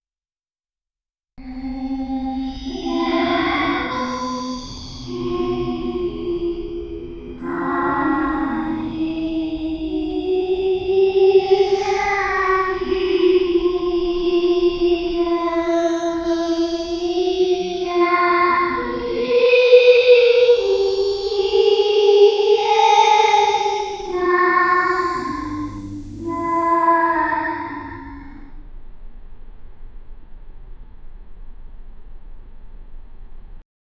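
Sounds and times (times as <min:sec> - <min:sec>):
creepy children's voices in an abandoned house: 0:01.4 - 0:28.5.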